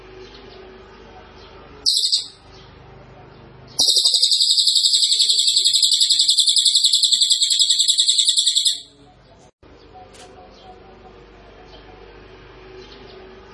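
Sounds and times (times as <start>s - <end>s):
small minivet song: 1.9s - 2.6s, 3.8s - 9.2s.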